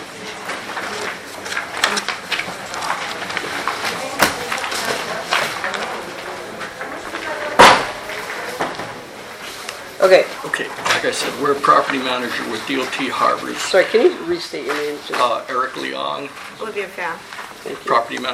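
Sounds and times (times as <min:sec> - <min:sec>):
voices murmuring at a public meeting: 0:00.0 - 0:18.3
shuffling: 0:00.7 - 0:18.3
door being shut: 0:07.5 - 0:09.0
speech: 0:10.0 - 0:18.3.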